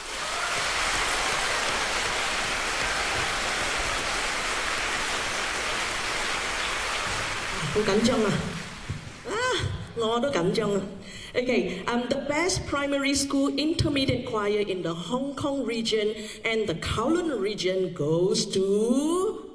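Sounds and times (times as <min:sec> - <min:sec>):
audience applause: 0:00.0 - 0:09.3
speech: 0:07.8 - 0:08.5, 0:10.0 - 0:19.3.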